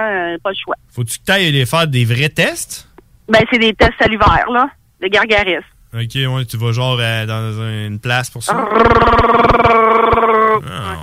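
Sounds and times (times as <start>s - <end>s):
speech: 0.0s - 11.0s
person imitating cat purring: 8.5s - 11.0s.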